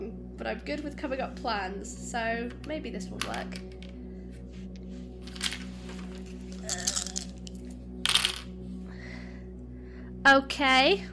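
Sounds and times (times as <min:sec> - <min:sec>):
speech: 0:00.4 - 0:03.9, 0:06.7 - 0:07.1, 0:10.2 - 0:11.1
dice being rolled: 0:03.2 - 0:03.9, 0:05.2 - 0:08.5.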